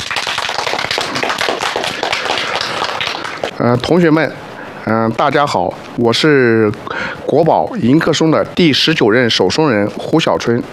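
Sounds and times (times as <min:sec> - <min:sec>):
audience applause for a speaker: 0:00.0 - 0:03.5
speech: 0:03.6 - 0:10.7.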